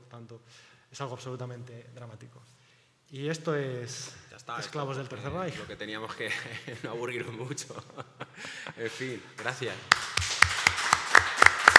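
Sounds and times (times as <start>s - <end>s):
speech: 0.1s - 10.2s
laughter: 6.2s - 9.2s
audience applause: 9.9s - 11.7s.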